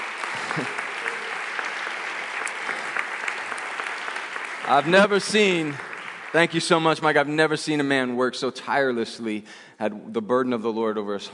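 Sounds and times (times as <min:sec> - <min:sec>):
large audience applause: 0:00.0 - 0:07.9
speech: 0:00.6 - 0:00.8, 0:04.7 - 0:11.3.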